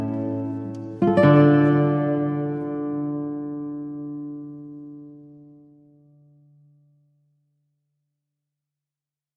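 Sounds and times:
classical guitar: 0:00.0 - 0:07.0.

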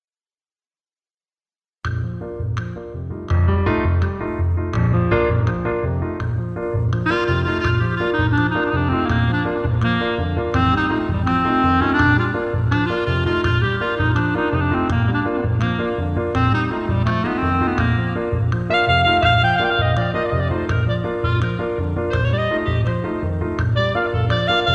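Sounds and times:
Jamaican rumba music: 0:01.9 - 0:24.7.

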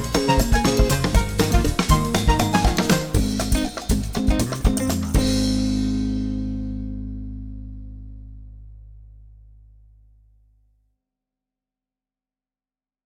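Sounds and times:
electronic fusion music: 0:00.0 - 0:05.8.

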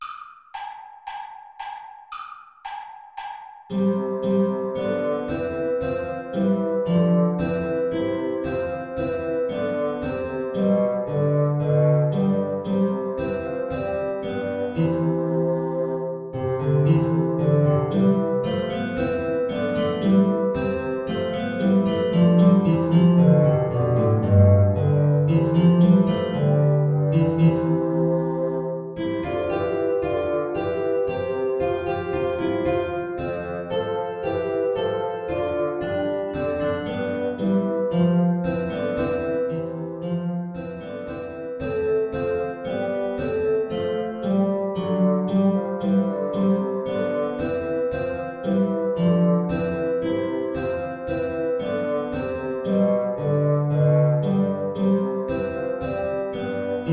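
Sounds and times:
backing track without trumpet: 0:00.0 - 0:56.9.

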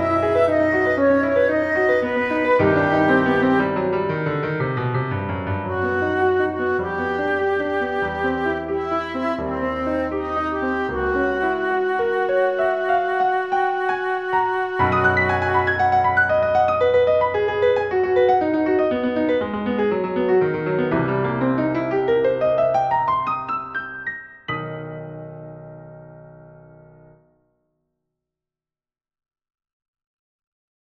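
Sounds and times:
flute: 0:00.0 - 0:04.4, 0:05.4 - 0:19.4
piano: 0:00.0 - 0:27.5.

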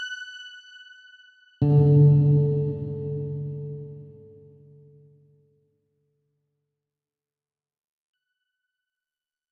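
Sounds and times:
alto solo: 0:01.6 - 0:04.9.

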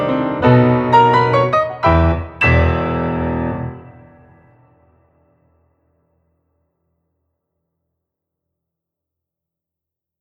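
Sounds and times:
old Russian piano waltz: 0:00.0 - 0:04.8.

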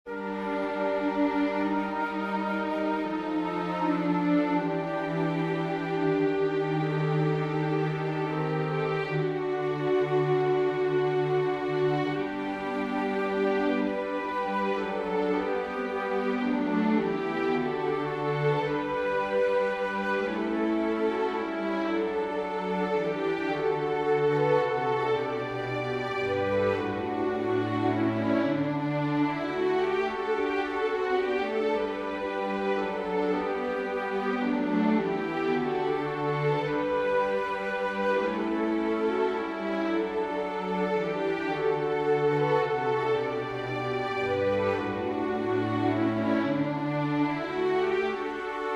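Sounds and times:
wind and string ensemble: 0:00.1 - 0:48.7.

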